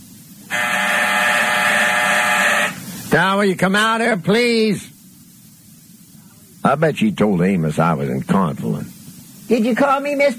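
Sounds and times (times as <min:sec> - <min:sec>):
office intercom electric buzzer: 0:00.5 - 0:02.8
speech: 0:03.1 - 0:04.9, 0:06.6 - 0:08.9, 0:09.5 - 0:10.3.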